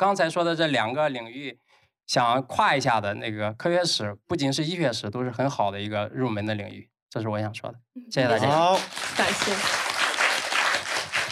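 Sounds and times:
speech: 0.0 - 9.8
audience applause: 8.4 - 11.3.

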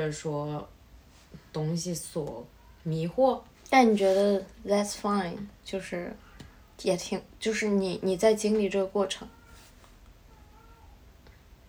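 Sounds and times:
speech: 0.0 - 6.2, 6.8 - 9.4
cat caterwauling in heat outside: 10.3 - 11.0.

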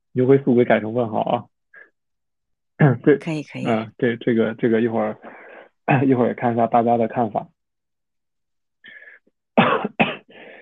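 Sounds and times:
speech: 0.2 - 1.5, 2.8 - 7.5
person coughing from a lingering after-effect of COVID: 9.6 - 10.3.

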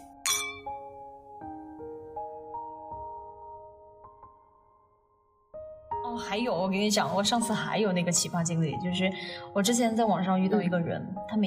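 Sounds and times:
glasses clinking in a toast: 0.2 - 0.8
speech: 6.1 - 11.4.

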